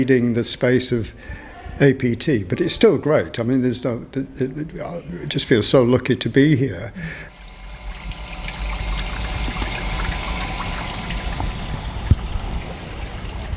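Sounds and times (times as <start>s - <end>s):
speech: 0.0s - 7.3s
creek water flowing: 7.3s - 13.5s.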